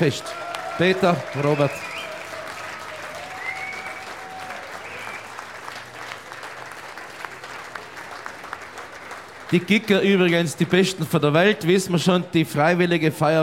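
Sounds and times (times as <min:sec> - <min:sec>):
speech: 0:00.0 - 0:01.9, 0:09.5 - 0:13.4
crowd applause for a brass band: 0:00.0 - 0:11.6
faint whistles: 0:01.5 - 0:02.3, 0:03.3 - 0:04.2, 0:04.8 - 0:05.4.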